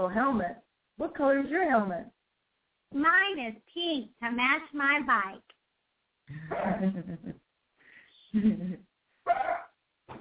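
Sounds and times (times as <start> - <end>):
speech: 0.0 - 2.2, 2.9 - 5.6, 6.3 - 7.4, 8.3 - 9.6
dog barking: 9.3 - 9.8.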